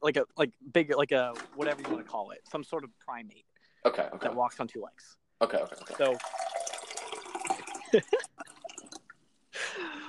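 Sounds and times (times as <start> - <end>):
speech: 0.0 - 6.5, 7.9 - 8.5
water being poured into a glass: 5.5 - 9.2.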